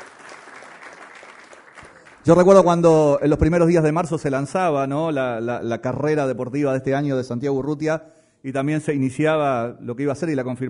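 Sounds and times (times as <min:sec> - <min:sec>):
audience applause greeting newly arrived guests at an event in Uruguay: 0:00.0 - 0:02.4
speech: 0:02.3 - 0:10.6.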